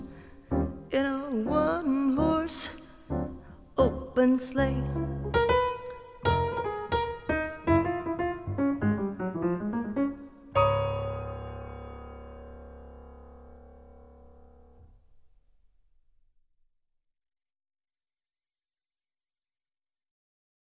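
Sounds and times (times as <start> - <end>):
Christmas song: 0.0 - 14.8.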